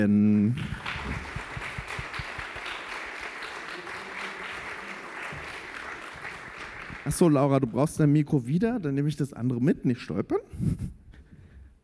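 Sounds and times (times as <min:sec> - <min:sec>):
speech: 0:00.0 - 0:01.2, 0:07.1 - 0:11.0
crowd applauding: 0:00.3 - 0:08.0.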